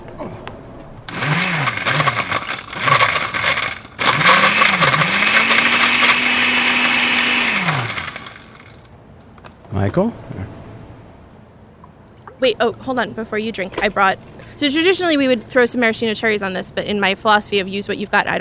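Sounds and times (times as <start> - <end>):
blender whirring through a drink: 1.1 - 8.9
speech: 9.8 - 10.6, 12.4 - 18.4.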